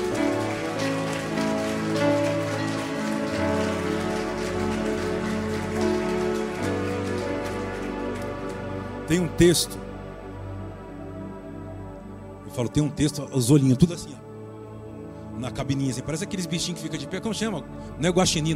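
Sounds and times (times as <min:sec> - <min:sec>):
audience applause: 0:00.0 - 0:09.4
speech: 0:09.1 - 0:09.8, 0:12.6 - 0:14.3, 0:15.6 - 0:18.5.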